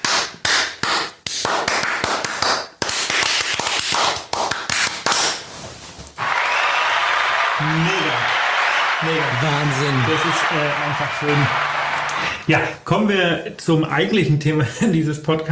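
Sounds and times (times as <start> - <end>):
hands clapping: 0.0 - 5.5, 6.2 - 12.5
speech: 9.1 - 11.8, 12.5 - 15.5.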